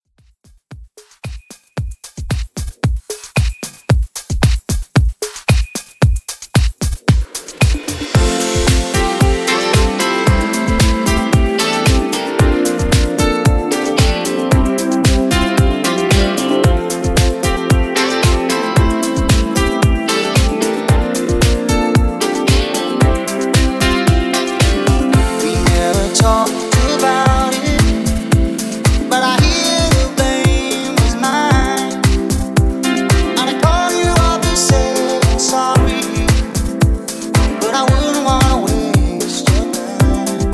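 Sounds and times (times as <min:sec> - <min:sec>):
club dance music mix: 0:01.0 - 0:40.5.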